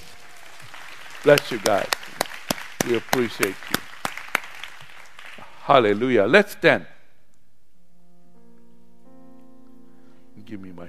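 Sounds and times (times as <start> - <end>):
audience clapping: 0.0 - 6.2
speech: 1.2 - 2.0, 2.8 - 3.8, 5.7 - 6.9, 10.5 - 10.8.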